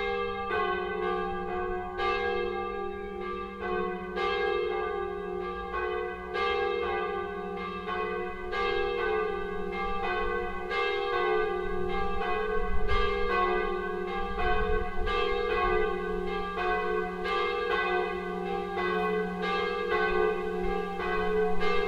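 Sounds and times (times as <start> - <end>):
old church bell peal in D F sharp G sharp in Bad Schwartau-Rensefeld: 0.0 - 21.8.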